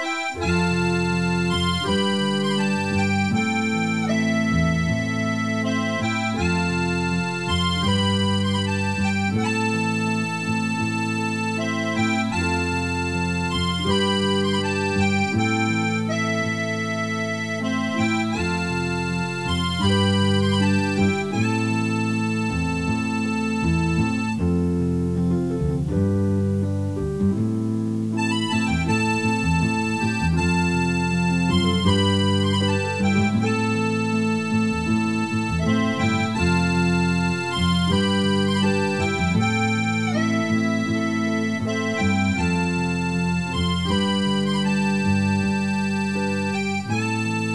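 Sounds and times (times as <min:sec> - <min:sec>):
music: 0:00.0 - 0:47.5.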